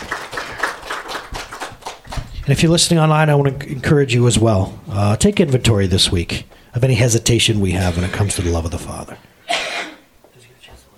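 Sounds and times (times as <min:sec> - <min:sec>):
round of applause: 0:00.0 - 0:02.4
speech: 0:02.5 - 0:09.2.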